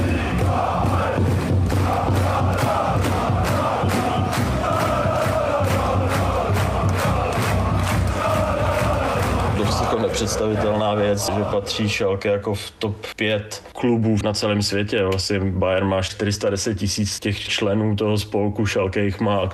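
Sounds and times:
football fans' rhythmic claps: 0:00.0 - 0:11.6
Schalke football fans chanting and roaring in the stadium in Gelsenkirchen: 0:00.0 - 0:12.1
speech: 0:10.2 - 0:19.5.

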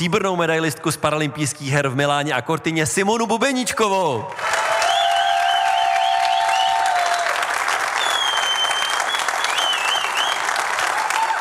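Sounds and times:
speech: 0:00.0 - 0:04.6
audience applause welcoming athlete: 0:04.3 - 0:11.3.

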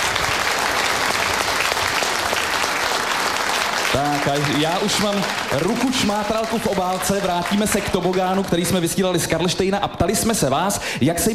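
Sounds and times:
audience applause: 0:00.0 - 0:09.6
speech: 0:03.9 - 0:11.3.

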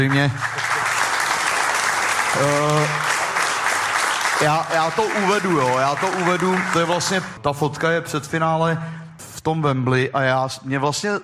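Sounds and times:
speech: 0:00.0 - 0:00.7, 0:02.3 - 0:03.1, 0:04.4 - 0:11.2
audience applause: 0:00.0 - 0:07.4.

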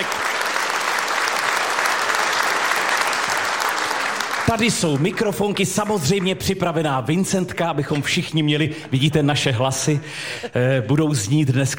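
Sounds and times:
applause from audience in historic hall in Luhačovice: 0:00.0 - 0:06.6
speech: 0:04.5 - 0:11.7.

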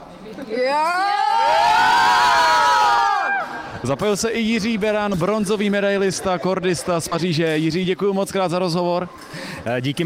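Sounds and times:
speech: 0:00.4 - 0:01.1, 0:03.8 - 0:10.0
girls cheering loudly at a sports tournament: 0:00.9 - 0:03.6.

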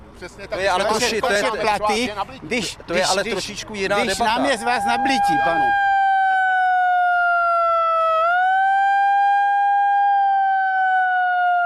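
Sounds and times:
speech: 0:00.2 - 0:05.9
small portable siren wailing: 0:04.0 - 0:11.6.

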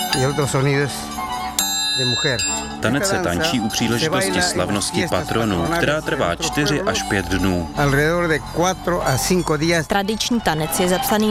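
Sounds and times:
clinking metal blades of scissors dance: 0:00.0 - 0:00.6, 0:01.6 - 0:03.1
wavering melodic line: 0:00.0 - 0:04.2
speech: 0:00.2 - 0:01.2, 0:02.0 - 0:11.2.

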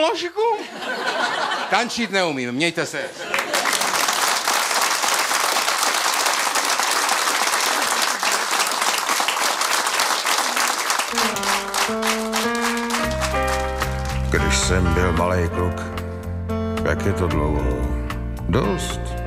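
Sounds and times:
speech: 0:00.0 - 0:03.4, 0:14.6 - 0:16.0, 0:16.8 - 0:19.1
laughter: 0:00.5 - 0:02.1, 0:02.9 - 0:04.1
audience applause: 0:03.3 - 0:14.6.

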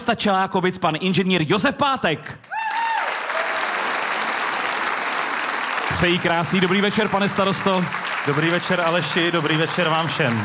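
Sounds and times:
speech: 0:00.0 - 0:02.8, 0:06.0 - 0:10.4
audience applause: 0:02.5 - 0:10.4.

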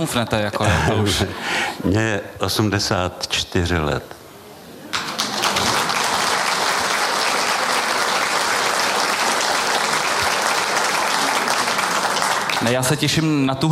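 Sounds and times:
speech: 0:00.0 - 0:04.2, 0:12.6 - 0:13.7
audience applause: 0:04.9 - 0:13.2.

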